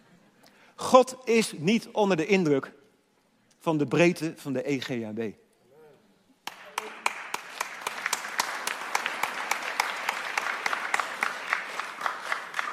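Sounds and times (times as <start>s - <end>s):
speech: 0.8s - 2.8s, 3.6s - 5.4s
audience clapping enthusiastically: 6.4s - 12.7s.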